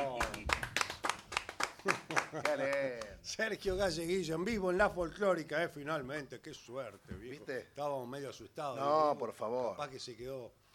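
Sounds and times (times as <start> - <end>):
audience applause: 0.0 - 3.1
speech: 1.8 - 10.6.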